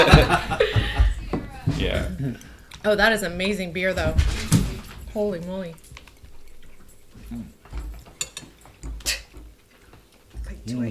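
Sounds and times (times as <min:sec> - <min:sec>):
laughter: 0:00.0 - 0:01.3
people eating and chewing: 0:00.0 - 0:10.9
speech: 0:02.3 - 0:04.5, 0:05.2 - 0:05.9, 0:07.3 - 0:07.6, 0:10.6 - 0:10.9.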